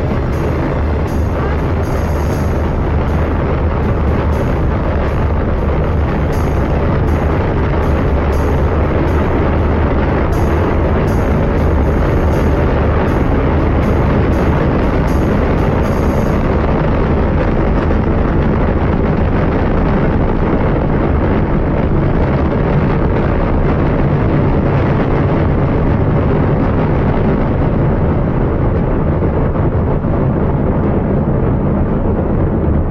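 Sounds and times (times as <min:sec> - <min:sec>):
rocket main engines igniting at launch: 0:00.0 - 0:32.9.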